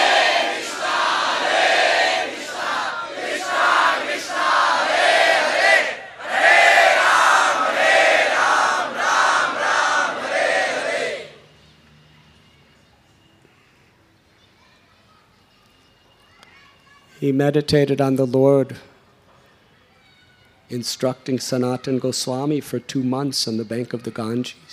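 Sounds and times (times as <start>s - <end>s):
roar of huge crowd chanting holy names: 0.0s - 11.5s
speech: 17.3s - 18.9s, 20.7s - 24.7s.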